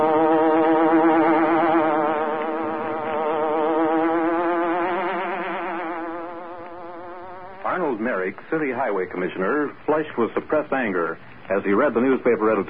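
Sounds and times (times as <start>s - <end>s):
electronic hornet buzzing sound effect: 0.0s - 8.3s
speech: 8.3s - 12.6s.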